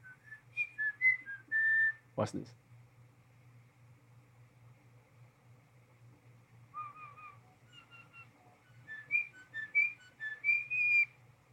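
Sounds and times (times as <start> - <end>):
bird whistling: 0.0 - 2.0, 6.7 - 11.2
speech: 2.2 - 2.7.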